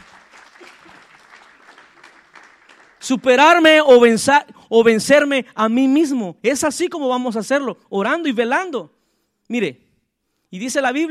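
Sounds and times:
audience applause: 0:00.0 - 0:03.5
speech: 0:03.0 - 0:09.8, 0:10.5 - 0:11.0.

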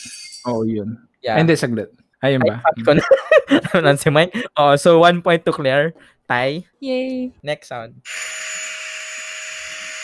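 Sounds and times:
speech: 0:00.0 - 0:08.7
laughter: 0:02.4 - 0:04.5
vacuum cleaner running: 0:08.1 - 0:10.0.

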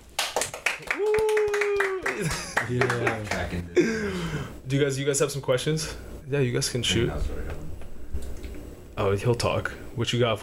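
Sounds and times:
studio audience clapping: 0:00.0 - 0:03.6
person whooping: 0:00.8 - 0:02.6
laughter: 0:01.7 - 0:04.2
speech: 0:02.2 - 0:07.7, 0:09.0 - 0:10.4.

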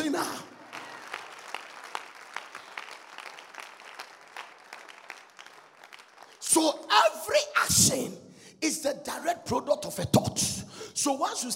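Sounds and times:
audience clapping: 0:00.0 - 0:06.8
speech: 0:06.5 - 0:11.5.

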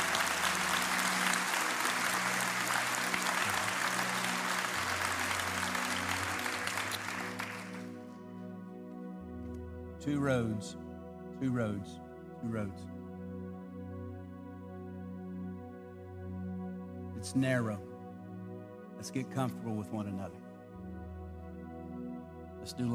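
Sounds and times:
audience hand clapping: 0:00.0 - 0:08.1
sustained keyboard chords: 0:00.0 - 0:22.9
speech: 0:10.0 - 0:10.8, 0:11.4 - 0:13.0, 0:17.3 - 0:17.9, 0:19.0 - 0:20.4, 0:22.7 - 0:22.9.

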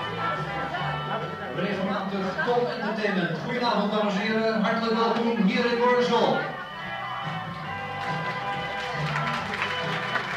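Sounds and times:
low hum of music or murmur: 0:00.0 - 0:10.3
speech: 0:01.6 - 0:06.5
audience applause: 0:07.9 - 0:10.3.

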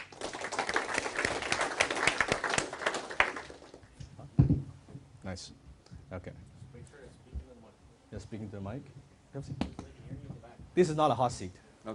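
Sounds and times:
audience applause: 0:00.0 - 0:03.8
speech: 0:08.3 - 0:09.8, 0:10.8 - 0:11.9.

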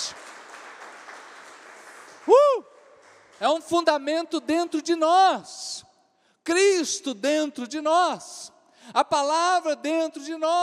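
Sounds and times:
audience applause: 0:00.0 - 0:03.4
speech: 0:02.3 - 0:02.7, 0:03.4 - 0:05.6, 0:06.4 - 0:10.6.

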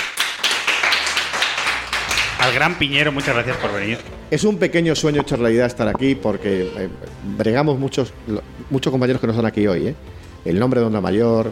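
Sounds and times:
small round of applause: 0:00.0 - 0:04.0
speech: 0:02.4 - 0:11.5.

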